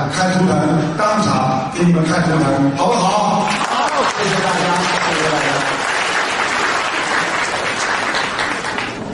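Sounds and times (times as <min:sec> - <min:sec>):
speech: 0:00.1 - 0:03.6
audience applause: 0:03.5 - 0:09.0.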